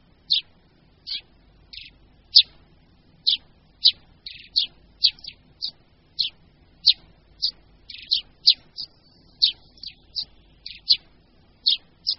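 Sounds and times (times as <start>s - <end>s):
Eurasian tree sparrow chirps: 0.0s - 12.1s.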